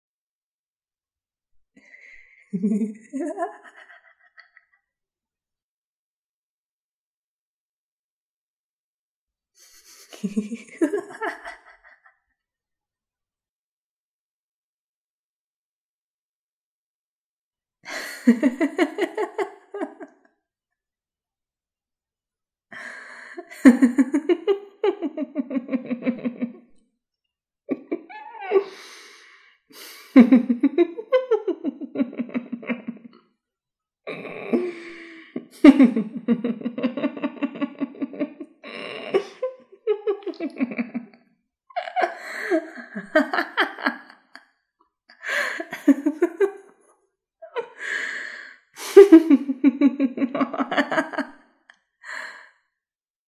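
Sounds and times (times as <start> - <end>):
evil laugh: 2.5 - 4.7, 9.6 - 12.2, 17.9 - 20.1, 23.4 - 26.7, 27.7 - 28.6, 30.1 - 33.2, 34.5 - 41.2, 41.8 - 44.4, 45.3 - 46.7, 48.8 - 51.4.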